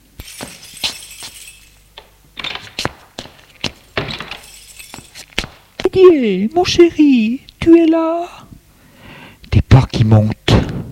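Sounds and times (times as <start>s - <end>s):
front door opening: 1.8s - 5.6s
speech: 6.0s - 8.4s, 10.1s - 10.4s.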